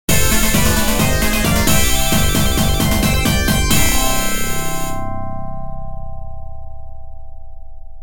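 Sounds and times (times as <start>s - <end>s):
game over jingle: 0.1s - 5.2s.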